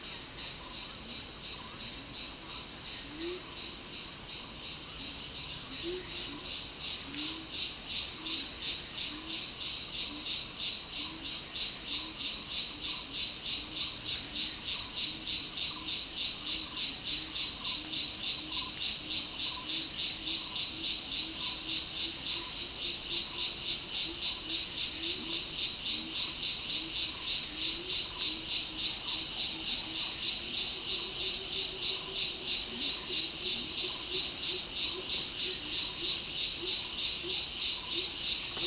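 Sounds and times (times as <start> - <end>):
montane rainforest ambience in Taman Negara, Malaysia, in the early evening: 0.0 - 38.6.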